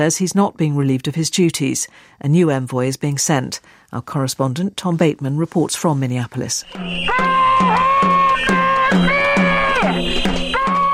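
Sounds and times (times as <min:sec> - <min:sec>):
speech: 0:00.0 - 0:07.8
sustained wavering tones like horns or chanting: 0:06.6 - 0:10.9
protesters banging drums: 0:06.7 - 0:10.9.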